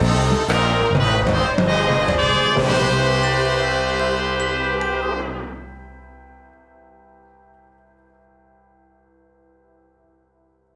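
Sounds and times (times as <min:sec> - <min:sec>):
complete music sting: 0:00.0 - 0:06.4.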